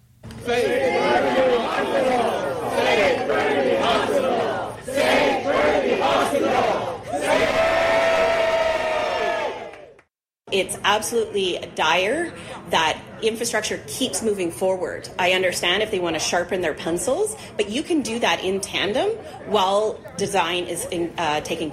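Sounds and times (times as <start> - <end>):
crowd of protesters chanting: 0.4 - 9.9
speech: 10.8 - 21.7.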